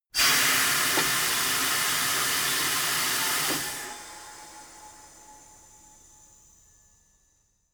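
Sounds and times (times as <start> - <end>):
tire changing machine hydraulic release: 0.2 - 5.1.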